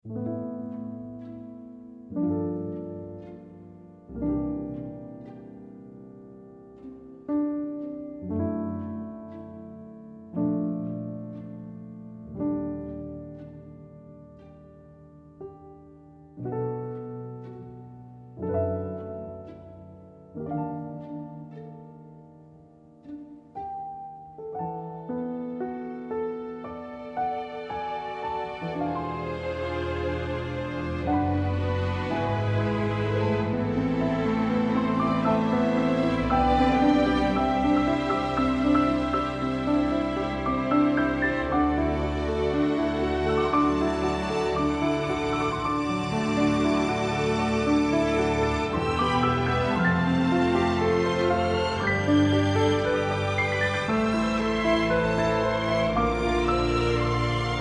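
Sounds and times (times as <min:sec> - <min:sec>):
field background music: 0:00.0 - 0:57.5.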